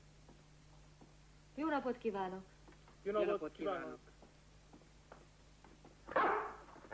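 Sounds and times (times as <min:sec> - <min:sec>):
speech: 0:01.6 - 0:04.1
house dog barking as guests arrive: 0:06.1 - 0:06.7.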